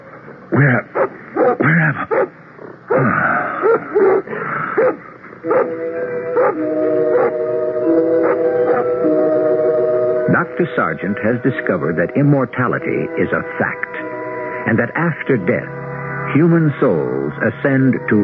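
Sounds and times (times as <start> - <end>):
speech: 0.5 - 2.2, 2.9 - 9.7, 10.3 - 18.2
dog barking: 1.0 - 2.3, 3.6 - 5.8, 6.4 - 7.4, 8.2 - 8.9.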